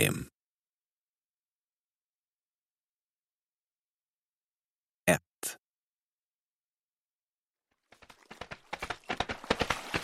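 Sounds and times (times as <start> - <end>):
speech: 0.0 - 0.3
fast horse hooves galloping: 7.7 - 10.0.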